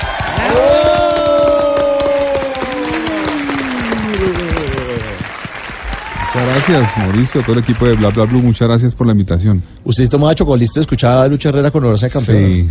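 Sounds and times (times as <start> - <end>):
audience applause: 0.0 - 8.6
speech: 0.5 - 0.7, 6.6 - 12.6.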